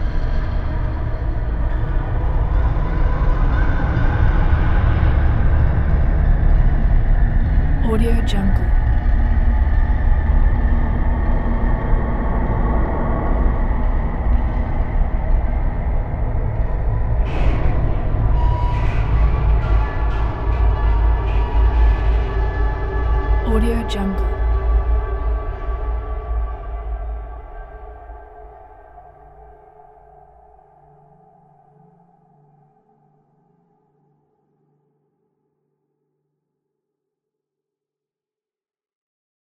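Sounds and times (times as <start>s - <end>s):
dark atmospheric drone: 0.0s - 28.8s.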